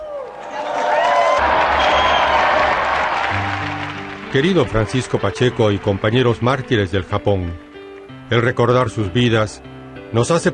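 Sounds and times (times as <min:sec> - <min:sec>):
audience applause: 0:00.0 - 0:07.2
speech: 0:04.4 - 0:07.7, 0:08.3 - 0:10.5.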